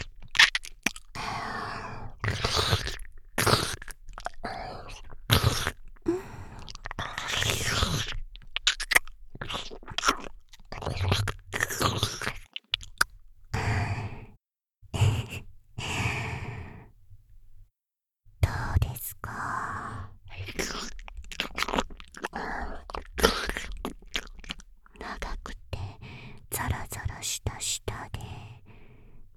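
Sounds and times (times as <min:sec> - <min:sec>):
slow ear licking: 0:00.0 - 0:13.9, 0:20.3 - 0:27.2
boosted whispering: 0:15.0 - 0:16.6, 0:18.4 - 0:21.0, 0:25.0 - 0:28.7.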